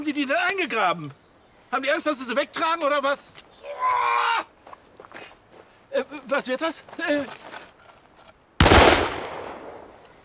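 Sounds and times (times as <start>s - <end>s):
speech: 0.0s - 4.5s, 5.9s - 7.6s
gunshots: 8.6s - 10.0s.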